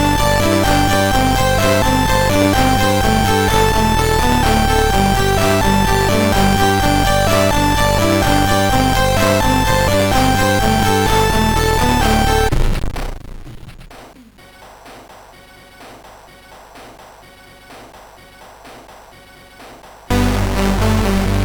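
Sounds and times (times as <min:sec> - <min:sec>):
synthesizer noise: 0:00.0 - 0:12.8, 0:20.1 - 0:21.4.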